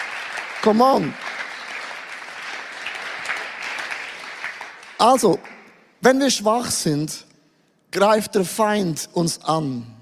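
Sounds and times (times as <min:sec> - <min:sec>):
audience applause: 0:00.0 - 0:05.7
speech: 0:00.6 - 0:01.2, 0:05.0 - 0:07.3, 0:07.9 - 0:09.9.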